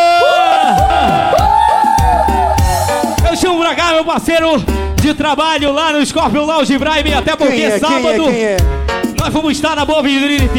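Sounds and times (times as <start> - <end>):
crowd shouting at a live show: 0.0 - 4.0
speech: 4.0 - 10.5.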